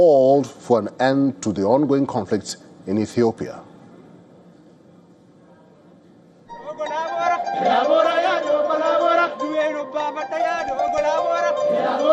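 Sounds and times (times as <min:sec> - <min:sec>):
speech: 0:00.0 - 0:03.7
festival crowd singing: 0:06.6 - 0:12.1.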